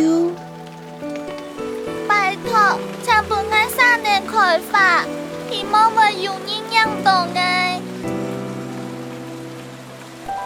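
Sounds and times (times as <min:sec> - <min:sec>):
rain falling: 0:00.0 - 0:10.4
speech: 0:04.2 - 0:07.8.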